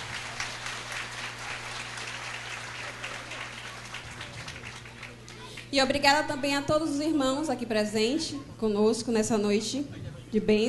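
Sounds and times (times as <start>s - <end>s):
audience clapping: 0.0s - 5.7s
speech: 5.7s - 10.6s.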